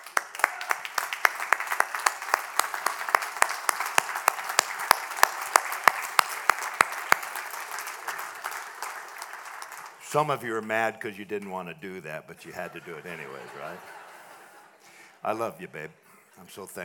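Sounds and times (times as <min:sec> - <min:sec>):
audience applause: 0:00.0 - 0:10.0
speech: 0:10.1 - 0:14.0, 0:15.2 - 0:16.8
laughter: 0:12.4 - 0:14.9.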